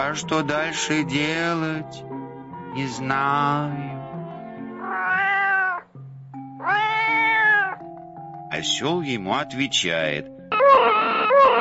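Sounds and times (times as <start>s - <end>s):
speech: 0.0s - 2.2s, 2.8s - 4.0s, 8.5s - 11.0s
cat meowing: 4.8s - 5.9s, 6.6s - 7.8s, 10.5s - 11.5s.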